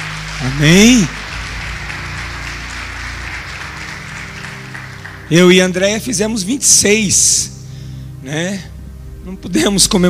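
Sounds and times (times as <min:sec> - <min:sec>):
audience applauding: 0:00.0 - 0:06.1
speech: 0:00.4 - 0:01.2, 0:05.3 - 0:07.6, 0:08.2 - 0:10.0.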